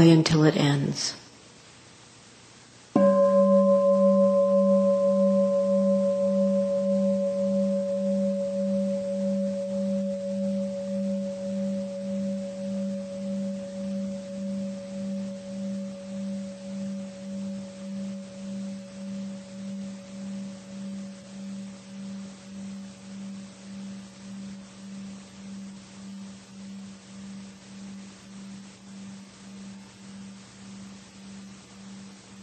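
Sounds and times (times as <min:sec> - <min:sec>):
speech: 0:00.0 - 0:01.2
gong ringing: 0:03.0 - 0:21.1.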